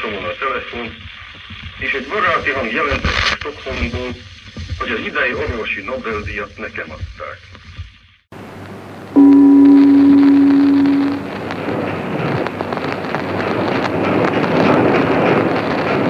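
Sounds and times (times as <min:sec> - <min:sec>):
speech: 0:00.1 - 0:07.7
broad rushing noise of boat on water: 0:08.4 - 0:16.0
steady horn-like tone: 0:09.2 - 0:11.4
continuous wind buffeting: 0:11.2 - 0:16.0.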